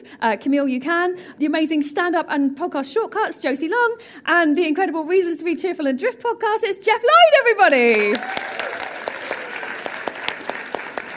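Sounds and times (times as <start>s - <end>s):
speech: 0.2s - 8.8s
audience applause: 7.9s - 11.1s.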